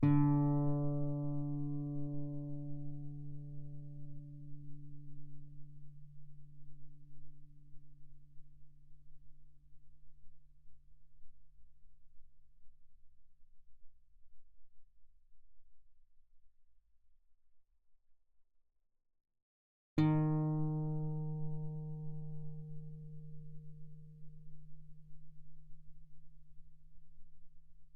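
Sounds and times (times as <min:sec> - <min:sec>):
guitar played fortissimo on the D string: 0:00.0 - 0:05.0, 0:20.0 - 0:24.5.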